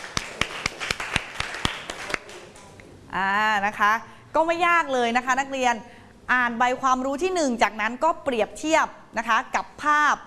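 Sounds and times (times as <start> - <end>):
students clapping for a classmate: 0.0 - 2.8
speech: 3.1 - 10.2.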